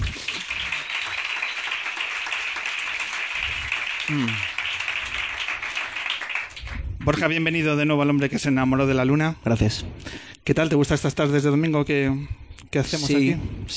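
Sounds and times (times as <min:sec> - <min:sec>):
audience applause: 0:00.0 - 0:07.2
speech: 0:04.1 - 0:04.5, 0:07.1 - 0:13.7.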